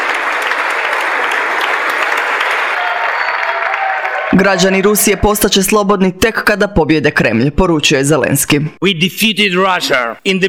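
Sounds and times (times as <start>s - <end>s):
applause and ovation in the US Congress for a speech by Volodymyr Zelensky: 0.0s - 5.5s
speech: 4.4s - 10.4s.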